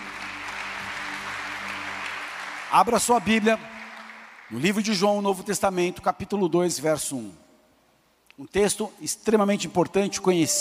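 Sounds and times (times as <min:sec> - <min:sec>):
audience applause: 0:00.0 - 0:05.0
speech: 0:02.7 - 0:03.8, 0:04.5 - 0:07.4, 0:08.4 - 0:10.5.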